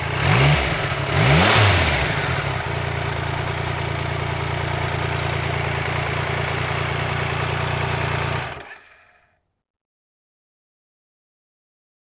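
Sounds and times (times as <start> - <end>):
Triumph Tiger motorcycle: 0.0 - 9.3.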